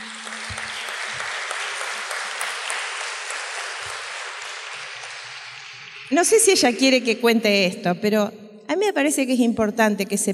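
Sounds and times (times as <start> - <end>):
audience applause: 0.0 - 6.9
speech: 6.1 - 10.3.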